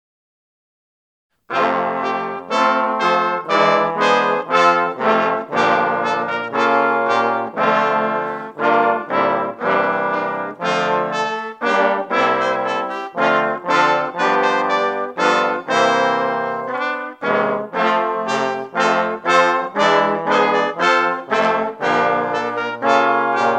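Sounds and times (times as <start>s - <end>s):
ensemble playing tutti: 1.5s - 23.5s.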